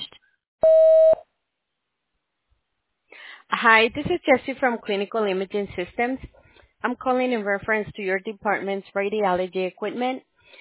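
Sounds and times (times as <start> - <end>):
voicemail tone: 0.6 - 1.2
speech: 3.6 - 10.3.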